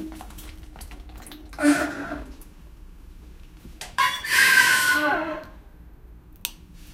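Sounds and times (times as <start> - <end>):
girl vomiting a huge amount: 1.6 - 2.3, 4.6 - 5.6.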